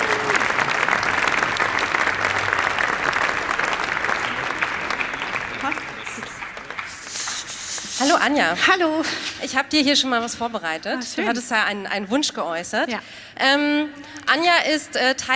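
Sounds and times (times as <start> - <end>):
warm audience applause: 0.0 - 8.5
speech: 8.2 - 15.3.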